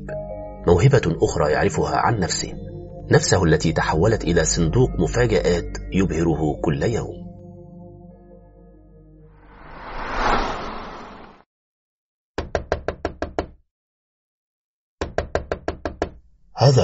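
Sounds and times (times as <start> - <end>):
speech: 0.6 - 7.2, 16.6 - 16.8
loud rough knocking on a door: 12.4 - 13.6, 15.0 - 16.2.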